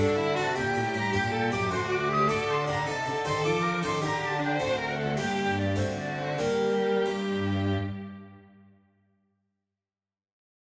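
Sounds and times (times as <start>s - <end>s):
alto recorder: 0.0s - 7.8s
continuo: 0.0s - 8.1s
violin: 0.0s - 8.6s.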